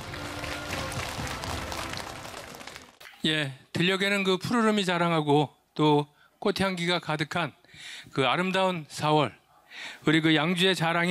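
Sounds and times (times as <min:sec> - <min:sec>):
audience applause: 0:00.0 - 0:03.0
speech: 0:03.2 - 0:11.0.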